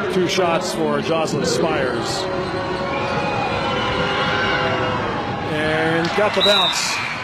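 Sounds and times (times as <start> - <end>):
speech: 0.1 - 3.1, 5.5 - 7.1
raucous basketball crowd cheering: 2.5 - 7.2.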